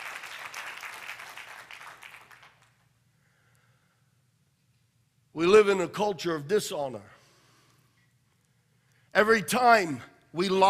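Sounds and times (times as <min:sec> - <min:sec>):
audience clapping: 0:00.0 - 0:02.8
speech: 0:05.4 - 0:07.1, 0:09.2 - 0:10.6.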